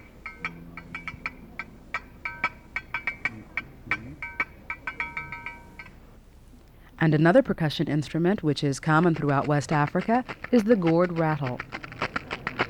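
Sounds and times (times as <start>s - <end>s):
iron bell being played: 0.0s - 6.0s
speech: 7.0s - 11.7s.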